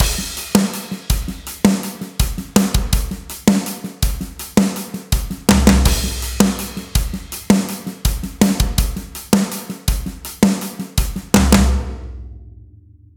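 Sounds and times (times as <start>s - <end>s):
drum kit overhead microphones: 0.0s - 12.2s.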